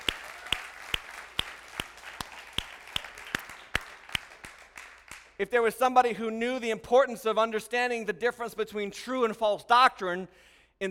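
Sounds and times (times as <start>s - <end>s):
church audience rhythmic clapping: 0.0s - 5.5s
speech: 5.4s - 10.8s.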